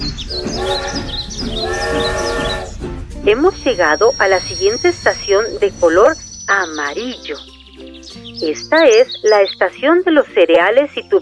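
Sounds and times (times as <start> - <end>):
high warbling chirps: 0.0 - 9.6
cartoonish train sound effect in a children's story: 0.4 - 2.8
speech: 3.3 - 11.2.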